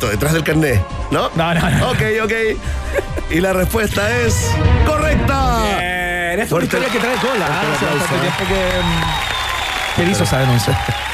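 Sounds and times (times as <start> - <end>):
speech: 0.0 - 9.4, 10.0 - 11.1
applause: 6.6 - 11.1.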